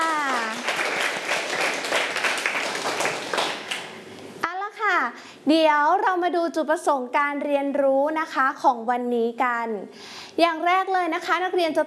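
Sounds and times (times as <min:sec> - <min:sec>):
children clapping: 0:00.0 - 0:04.0
speech: 0:05.5 - 0:11.8.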